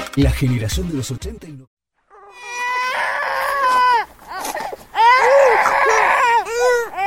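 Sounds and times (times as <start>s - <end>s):
speech: 0.1s - 1.8s
child crying in wailing sobs: 2.1s - 7.0s.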